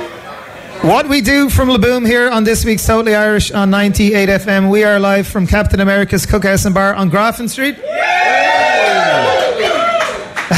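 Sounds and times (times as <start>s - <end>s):
speech: 0.8s - 8.6s
crowd of Irish music fans cheering and shouting in a bar: 7.8s - 10.5s.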